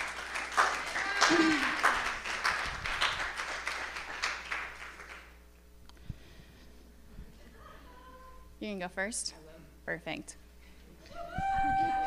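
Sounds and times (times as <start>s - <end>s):
audience applause: 0.0s - 5.3s
speech: 8.7s - 10.4s.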